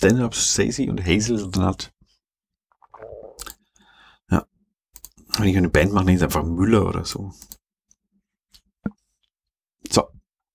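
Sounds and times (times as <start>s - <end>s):
speech: 0.0s - 2.0s, 4.3s - 4.5s, 5.4s - 7.6s, 9.9s - 10.2s
gulp: 2.8s - 3.6s
taking a small sip of a drink: 2.8s - 3.6s.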